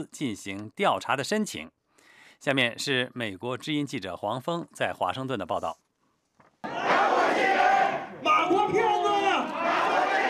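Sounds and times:
speech: 0:00.0 - 0:01.8, 0:02.4 - 0:05.8
angry crowd of MH370 passengers' families shouting in protest outside the Malaysian embassy in Beijing: 0:06.6 - 0:10.2.

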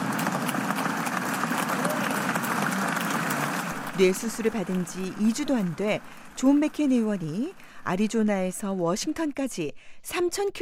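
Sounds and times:
legislators standing and applauding: 0:00.0 - 0:08.0
speech: 0:04.0 - 0:10.5.

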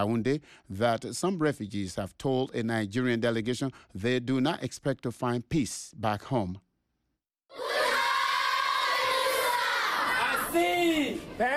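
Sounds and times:
speech: 0:00.0 - 0:06.7, 0:10.5 - 0:11.5
primary school children singing at a refugee camp in northern Cameroon: 0:07.5 - 0:10.4.

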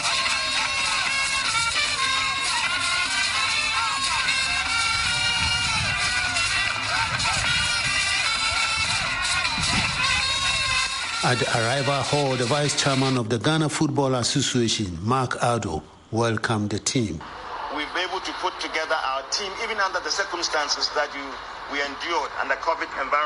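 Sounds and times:
Ghanaian football supporters cheering at Kotoka International Airport in Accra: 0:00.0 - 0:11.1, 0:17.2 - 0:23.2
speech: 0:11.3 - 0:17.4, 0:18.4 - 0:23.2.

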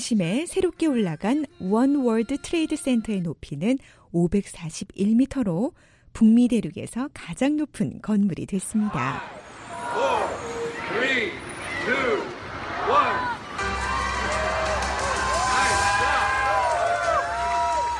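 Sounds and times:
speech: 0:00.0 - 0:09.4
crowd cheering and shouting at opening ceremony: 0:08.8 - 0:17.9.

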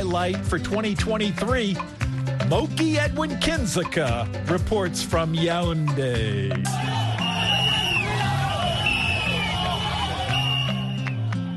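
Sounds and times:
speech: 0:00.0 - 0:07.0
droning horns: 0:06.7 - 0:11.0
large crowd of fans applauding and cheering: 0:06.7 - 0:11.5
sharp whistle-like tones: 0:06.8 - 0:11.2.

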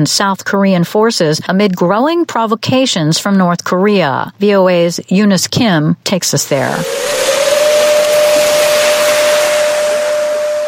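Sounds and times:
speech: 0:00.0 - 0:07.6
constant hissing noise: 0:06.5 - 0:10.6
air raid siren blaring: 0:06.6 - 0:10.6.

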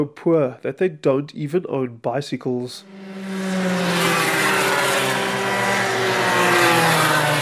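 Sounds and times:
speech: 0:00.0 - 0:03.2
racing karts roaring around a track: 0:02.8 - 0:07.3.

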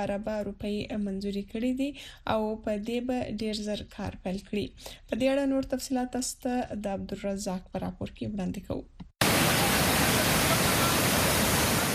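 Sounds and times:
speech: 0:00.0 - 0:09.0
natural waterfall near Dargai bazaar in Khyber Pakhtunkhwa: 0:09.2 - 0:11.9.

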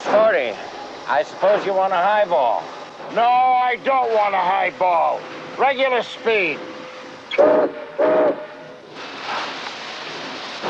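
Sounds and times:
rolling rail cars rumbling: 0:00.0 - 0:10.6
speech: 0:00.1 - 0:06.7
freight train whistle blasts: 0:07.3 - 0:08.8.

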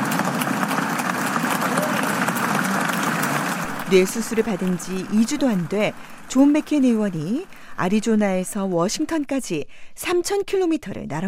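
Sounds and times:
senators applauding: 0:00.0 - 0:09.3
speech: 0:03.9 - 0:11.2.

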